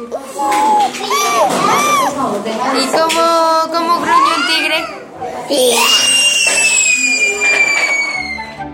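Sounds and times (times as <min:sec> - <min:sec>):
children imitating a horse neighing: 0:00.3 - 0:02.2, 0:04.1 - 0:08.6
speech: 0:02.3 - 0:07.5.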